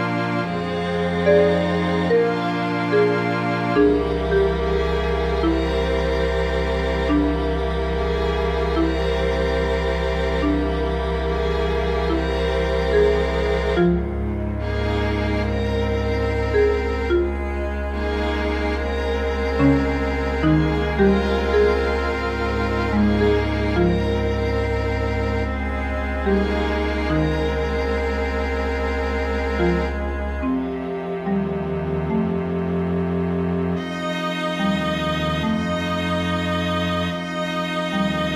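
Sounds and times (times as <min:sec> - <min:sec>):
marimba and strings playing: 0:00.0 - 0:38.3.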